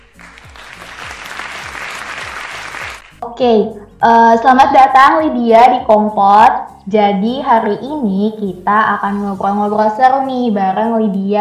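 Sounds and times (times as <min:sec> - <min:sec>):
applause: 0:00.0 - 0:03.2
speech: 0:03.3 - 0:11.3.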